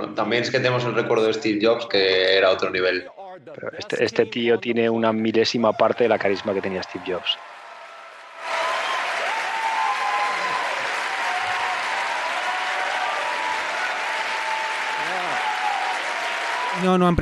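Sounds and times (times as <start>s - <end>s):
speech: 0.2s - 7.5s, 16.8s - 17.1s
audience applauding at a product event: 5.9s - 17.1s.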